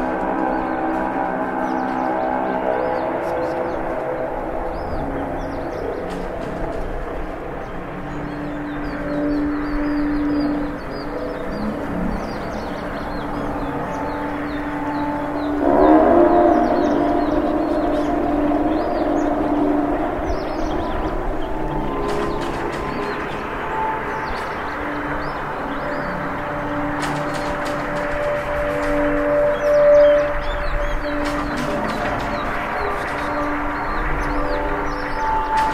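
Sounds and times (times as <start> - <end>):
ambient soundscape transition: 0.0 - 35.7.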